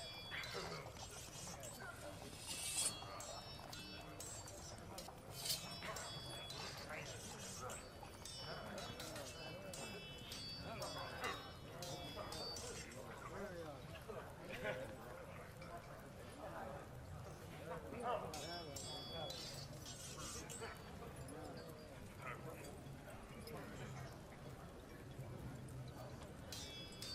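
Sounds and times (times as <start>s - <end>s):
fantasy RPG war camp ambience: 0.0s - 27.1s.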